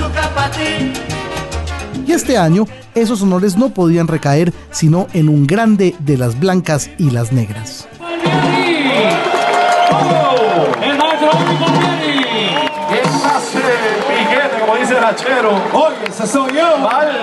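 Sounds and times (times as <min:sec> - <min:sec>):
speech: 0:00.4 - 0:01.1, 0:02.1 - 0:08.6, 0:15.0 - 0:17.2
large crowd cheering, whooping and shouting: 0:08.0 - 0:17.2
applause: 0:08.2 - 0:17.2.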